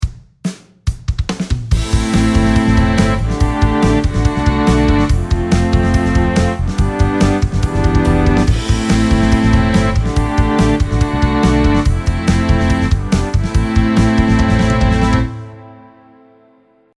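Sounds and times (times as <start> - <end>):
delay effect: 1.8 - 15.8.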